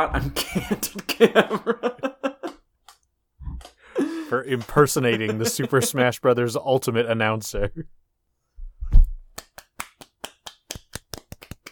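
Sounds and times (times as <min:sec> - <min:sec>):
speech: 0:00.0 - 0:02.1, 0:04.3 - 0:08.0
laughter: 0:00.0 - 0:02.6, 0:04.0 - 0:06.3
low thump: 0:08.6 - 0:09.2
light crisp golf claps: 0:09.3 - 0:11.7.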